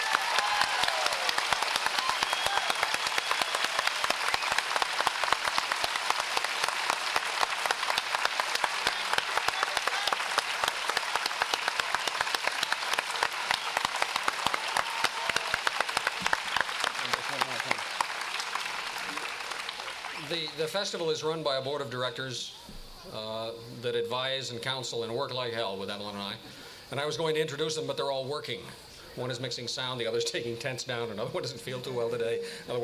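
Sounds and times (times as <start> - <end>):
audience applause: 0.0 - 20.6
speech: 20.6 - 32.8.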